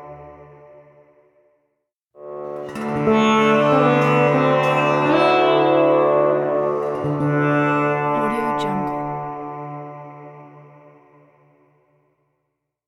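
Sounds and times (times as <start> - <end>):
Indian sitar logo jingle: 2.4 - 9.3.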